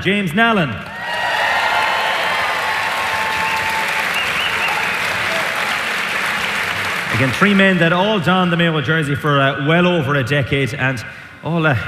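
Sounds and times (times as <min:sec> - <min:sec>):
speech: 0:00.0 - 0:00.9, 0:07.2 - 0:11.8
audience applause: 0:00.8 - 0:07.8.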